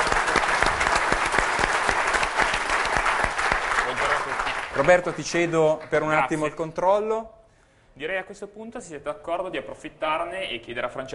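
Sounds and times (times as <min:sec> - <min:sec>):
audience applause: 0:00.0 - 0:06.2
speech: 0:04.8 - 0:07.4, 0:08.0 - 0:11.1.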